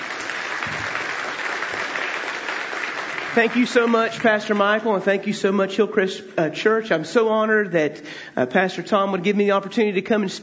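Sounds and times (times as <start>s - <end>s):
church congregation applauding to welcome a guest speaker: 0.0s - 5.3s
speech: 3.4s - 10.4s.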